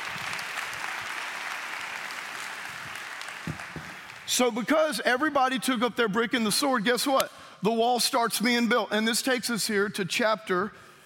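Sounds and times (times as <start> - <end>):
audience applause: 0.0 - 4.3
speech: 4.3 - 10.9.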